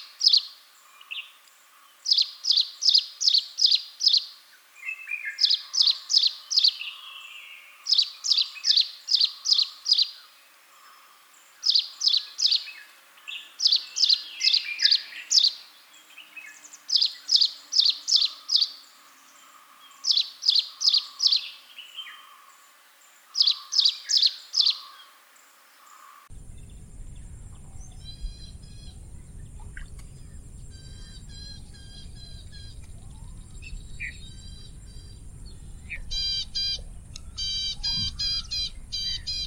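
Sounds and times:
prinia calling: 0.0 - 39.4.

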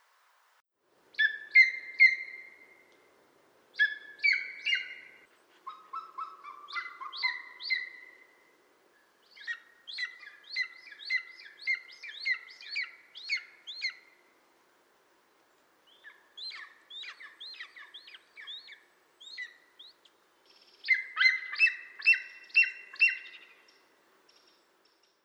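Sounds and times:
bird singing: 3.8 - 8.2, 9.0 - 14.1, 15.9 - 25.2.

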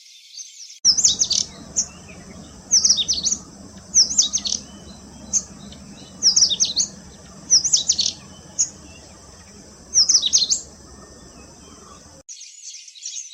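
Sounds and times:
Indian robin singing: 0.9 - 12.2.

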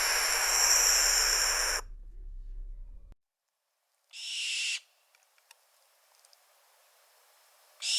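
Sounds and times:
bird giving harsh hissing screeches: 0.0 - 3.1.

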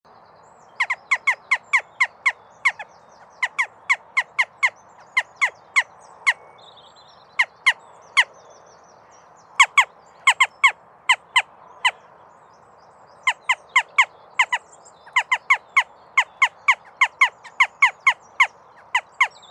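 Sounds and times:
jackdaws calling: 0.7 - 6.5, 9.6 - 12.1, 13.3 - 19.4.

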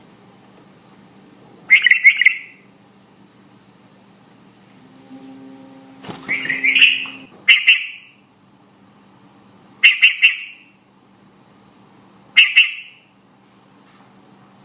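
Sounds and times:
red-vented bulbul calling: 1.7 - 2.6, 6.2 - 8.1, 9.8 - 10.6, 12.4 - 13.0.

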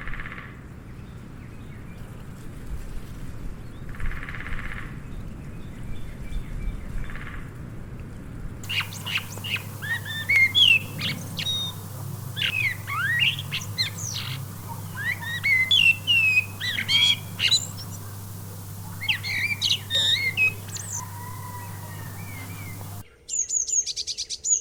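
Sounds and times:
different birds calling: 8.6 - 23.0.

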